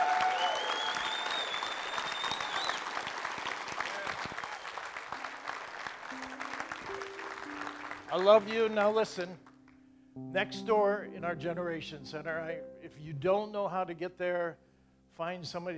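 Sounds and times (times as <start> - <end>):
cheers and whoops: 0.0 - 3.0
crowd applauding: 0.0 - 9.6
speech: 8.2 - 9.5, 10.2 - 14.6, 15.2 - 15.7.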